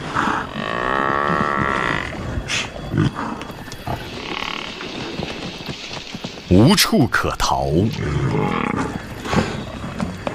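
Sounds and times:
lions roaring and snarling: 0.0s - 5.7s, 7.8s - 10.3s
speech: 6.5s - 8.8s.

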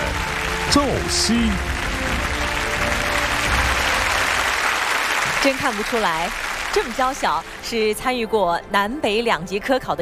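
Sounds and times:
audience applause: 0.0s - 7.6s
speech: 0.7s - 1.7s, 5.4s - 9.9s.

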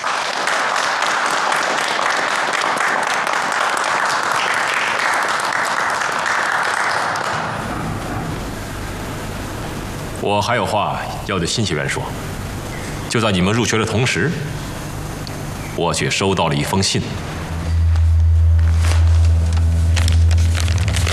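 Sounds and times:
large crowd applause welcoming new students: 0.0s - 8.8s, 17.8s - 21.1s
speech: 10.3s - 12.4s, 13.1s - 14.7s, 15.8s - 17.4s.

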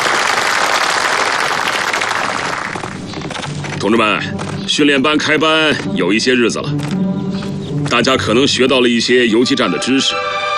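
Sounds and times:
room full of people applauding to welcome a division commander: 0.0s - 2.8s
speech: 3.8s - 7.0s, 7.9s - 10.4s.

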